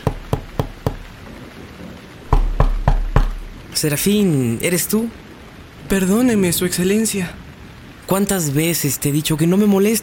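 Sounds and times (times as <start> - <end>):
knocking on a door: 0.0 - 1.0, 2.3 - 3.4
speech: 3.8 - 5.2, 5.9 - 7.4, 8.1 - 10.0.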